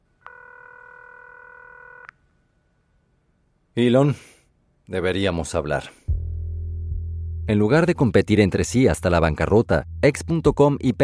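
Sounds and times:
telephone tone as a number is dialed: 0:00.2 - 0:02.1
speech: 0:03.8 - 0:04.3, 0:04.9 - 0:06.0, 0:07.5 - 0:11.0.

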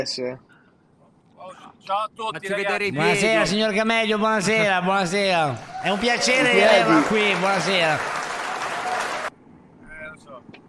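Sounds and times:
speech: 0:00.0 - 0:00.5, 0:01.4 - 0:08.2
audience applause: 0:04.4 - 0:09.3.

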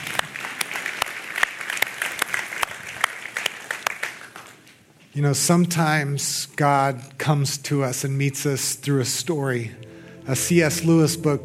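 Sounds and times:
audience applause: 0:00.0 - 0:04.6
speech: 0:05.2 - 0:11.4.

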